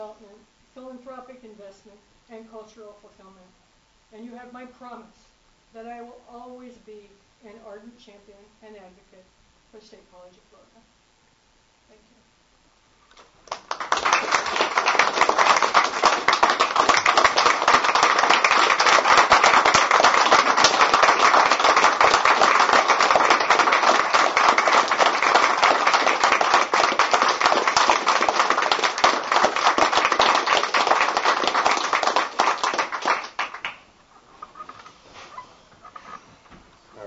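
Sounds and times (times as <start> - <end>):
speech: 0.2 - 10.9
audience applause: 13.4 - 33.8.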